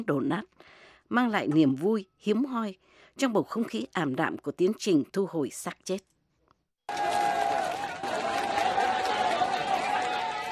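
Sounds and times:
speech: 0.0 - 6.1, 6.9 - 7.2
crowd applauding: 6.9 - 10.5
people shouting: 6.9 - 10.5.

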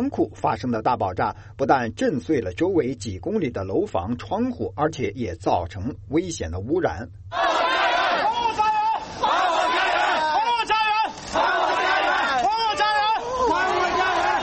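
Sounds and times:
speech: 0.0 - 8.0
emotional crowd of protesting homeless residents: 7.3 - 14.4.

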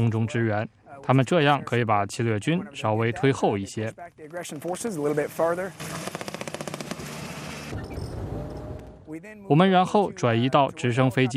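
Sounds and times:
speech: 0.0 - 6.1, 9.2 - 11.3
small arms gunfire during military exercise: 5.8 - 7.7.

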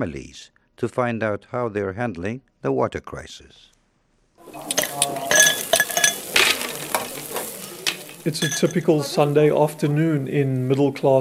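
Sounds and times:
speech: 0.0 - 3.7, 8.2 - 11.2
soft crackling hiss: 3.7 - 11.2
ice cubes clinking into a glass: 4.5 - 8.9.

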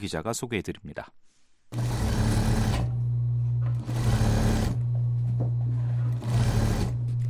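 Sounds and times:
speech: 0.0 - 1.8
sewing machines running busily: 1.7 - 3.0, 3.7 - 4.9, 5.9 - 7.2.

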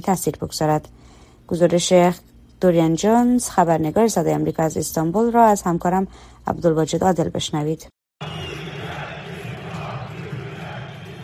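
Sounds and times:
speech: 0.0 - 7.9
tens of thousands of football fans chanting in Istanbul stadium: 8.2 - 11.2.

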